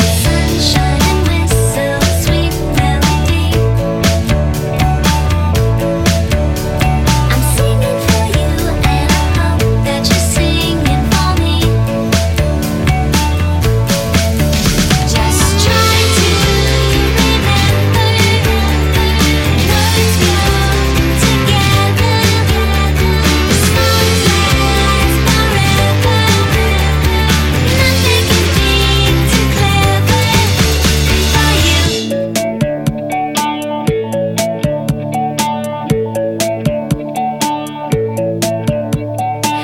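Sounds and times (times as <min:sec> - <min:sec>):
glockenspiel pop music: 0:00.0 - 0:39.6.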